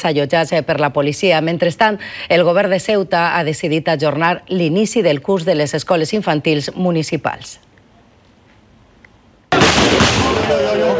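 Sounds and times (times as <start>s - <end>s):
speech: 0.0s - 7.7s
crowd noise: 9.5s - 10.9s
gunshots fired into the air: 9.5s - 10.9s.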